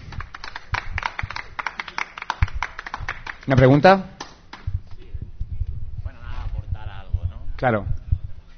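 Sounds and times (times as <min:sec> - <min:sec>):
audience applause: 0:00.0 - 0:03.6
speech: 0:03.5 - 0:04.1, 0:07.6 - 0:08.0.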